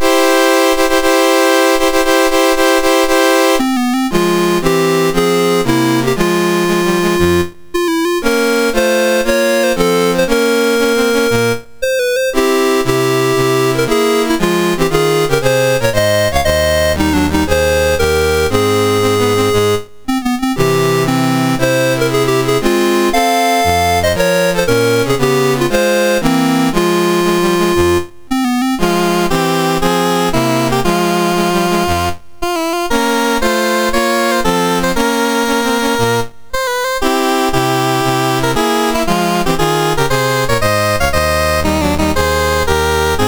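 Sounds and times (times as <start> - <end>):
national anthem on MOS 6581 chip: 0.0 - 43.2.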